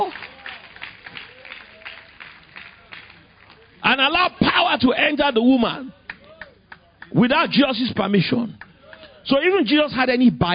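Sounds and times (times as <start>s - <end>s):
audience clapping: 0.0s - 4.0s, 6.1s - 7.3s, 8.6s - 9.1s
speech: 4.0s - 6.0s, 7.1s - 8.6s, 9.2s - 10.5s.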